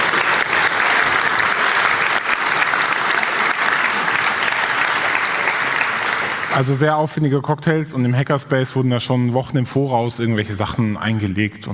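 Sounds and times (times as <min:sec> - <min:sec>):
applause: 0:00.0 - 0:06.8
speech: 0:06.6 - 0:11.7.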